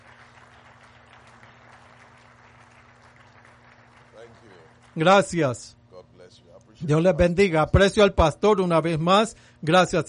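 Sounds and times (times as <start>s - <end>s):
crowd applause: 0.0s - 5.3s
speech: 4.2s - 5.8s, 6.8s - 10.0s.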